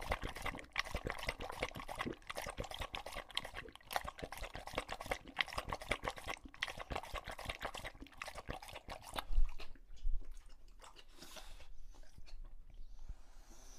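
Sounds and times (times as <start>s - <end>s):
English bulldog lapping water from a bowl: 0.0s - 12.5s.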